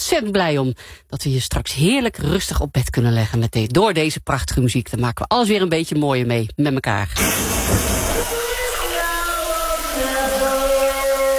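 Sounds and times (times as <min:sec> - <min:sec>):
speech: 0:00.1 - 0:08.4
shower running: 0:07.2 - 0:11.3.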